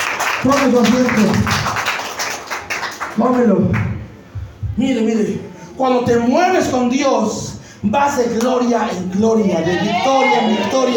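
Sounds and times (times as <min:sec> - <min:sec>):
audience applauding: 0:00.0 - 0:03.8
speech: 0:00.4 - 0:01.7, 0:03.2 - 0:03.9, 0:04.8 - 0:10.9.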